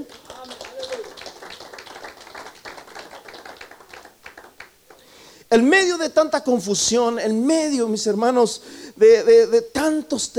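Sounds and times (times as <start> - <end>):
crowd clapping: 0.0 - 5.1
speech: 5.5 - 10.3.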